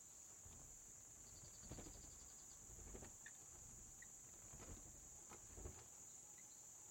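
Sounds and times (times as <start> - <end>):
bat wings flapping in a cave: 0.5 - 5.9.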